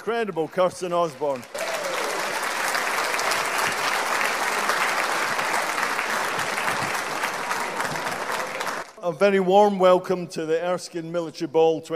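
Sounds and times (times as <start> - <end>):
speech: 0.0 - 1.6, 9.0 - 11.9
crowd applause at the Erskine Military Ball 2022: 0.0 - 9.0.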